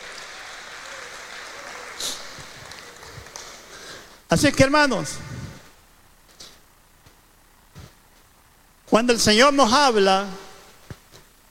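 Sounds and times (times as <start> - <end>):
audience applause: 0.0 - 4.2
speech: 4.3 - 5.3, 9.0 - 10.4.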